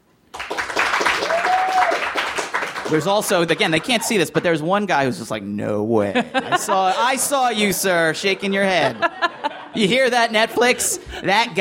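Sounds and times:
audience round of applause: 0:00.3 - 0:04.4
laughter: 0:02.9 - 0:04.5, 0:06.0 - 0:11.5
speech: 0:02.9 - 0:11.5.

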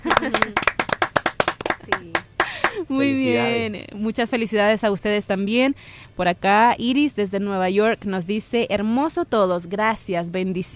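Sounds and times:
laughter: 0:00.0 - 0:00.8
hands clapping: 0:00.0 - 0:03.5
speech: 0:00.2 - 0:00.7, 0:03.0 - 0:10.7.

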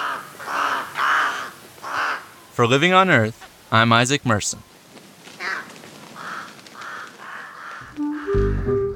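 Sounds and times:
raven gurgling calls: 0:00.0 - 0:02.6, 0:05.4 - 0:08.8
speech: 0:02.6 - 0:04.7.

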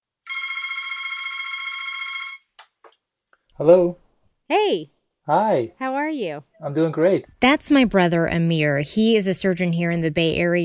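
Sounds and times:
telephone ringing for a call: 0:00.2 - 0:02.5
speech: 0:03.6 - 0:10.6.

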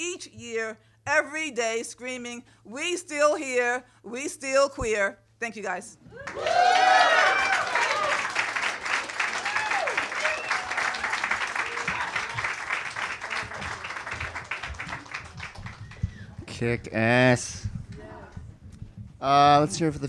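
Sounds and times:
speech: 0:00.2 - 0:07.6, 0:16.6 - 0:17.8, 0:19.2 - 0:20.0
cheers and whoops: 0:06.1 - 0:08.6, 0:09.2 - 0:12.6
crowd applauding: 0:06.2 - 0:16.8.

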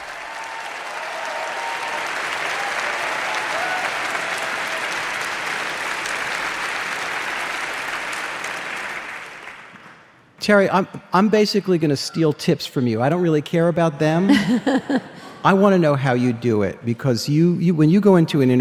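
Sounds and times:
festival crowd applauding a guest's entrance: 0:00.0 - 0:10.2
speech: 0:10.4 - 0:18.5
laughter: 0:14.1 - 0:15.9.

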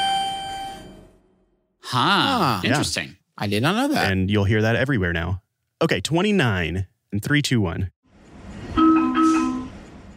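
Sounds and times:
subway door-closing two-tone chime: 0:00.0 - 0:01.2
speech: 0:01.9 - 0:08.0.

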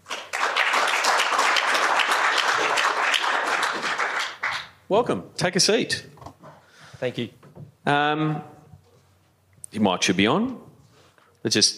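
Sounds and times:
audience applause welcoming a Tennis Australia guest to the stage: 0:00.0 - 0:04.7
speech: 0:04.9 - 0:06.2, 0:07.0 - 0:08.5, 0:09.7 - 0:10.7, 0:11.4 - 0:11.7.

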